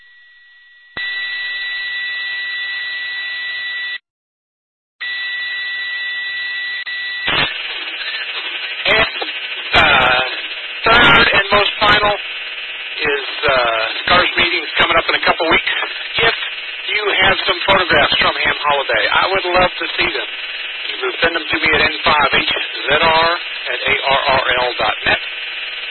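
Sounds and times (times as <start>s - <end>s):
siren blaring: 1.0s - 4.0s, 5.0s - 7.6s
harsh irregular voice-like bursts: 8.9s - 12.2s, 13.0s - 25.2s.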